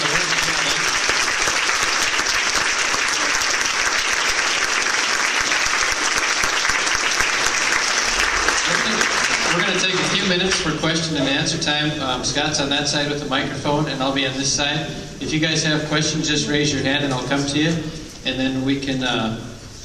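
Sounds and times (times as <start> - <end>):
audience applause: 0.0 - 11.3
speech: 11.0 - 19.5.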